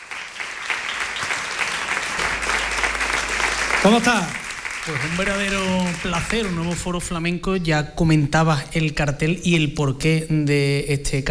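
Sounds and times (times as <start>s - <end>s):
audience applause: 0.0s - 7.2s
speech: 3.8s - 11.2s.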